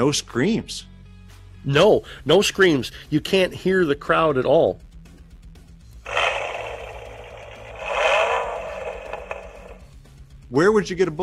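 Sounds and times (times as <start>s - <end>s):
speech: 0.0s - 0.9s, 1.6s - 4.8s, 10.5s - 11.2s
Ford Mustang engine revving and rumbling: 6.1s - 10.0s.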